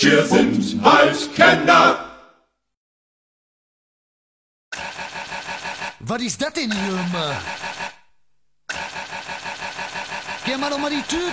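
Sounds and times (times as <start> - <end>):
speech: 0.0 - 2.0, 6.0 - 7.7, 10.6 - 11.3
V6 car engine starting: 4.8 - 8.0, 8.7 - 11.3.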